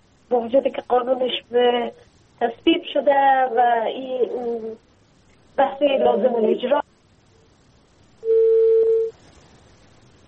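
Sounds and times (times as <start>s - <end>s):
speech: 0.3s - 4.9s, 5.6s - 6.9s
telephone line tone as a call to a guest is cut off: 8.2s - 9.2s.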